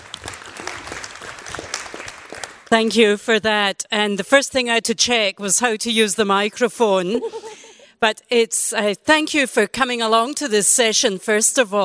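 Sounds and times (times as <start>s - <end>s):
audience applause: 0.0s - 2.7s
speech: 2.7s - 7.4s, 8.0s - 11.8s.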